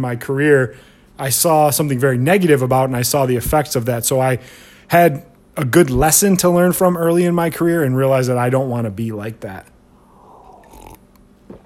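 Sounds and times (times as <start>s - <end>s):
speech: 0.0s - 9.7s
brief throaty sound: 9.9s - 11.6s
person slurping a sip of coffee from a cup: 10.0s - 11.6s
soft swallow: 10.0s - 11.6s.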